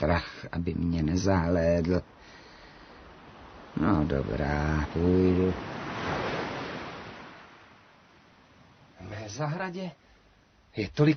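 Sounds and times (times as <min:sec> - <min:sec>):
speech: 0:00.1 - 0:02.2, 0:03.8 - 0:06.2, 0:09.3 - 0:10.1, 0:10.8 - 0:11.1
sea waves washing onto the shore: 0:02.0 - 0:09.4.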